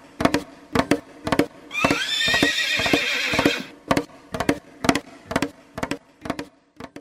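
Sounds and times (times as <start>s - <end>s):
hooves clip-clopping: 0.3s - 5.5s
horse whinnying: 1.7s - 3.7s.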